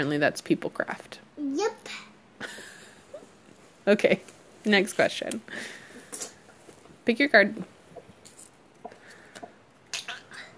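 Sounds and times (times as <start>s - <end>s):
speech: 0.0s - 2.5s, 3.9s - 5.8s, 7.1s - 7.8s
low hiss: 1.3s - 10.5s
faint wet gulping: 7.7s - 10.4s.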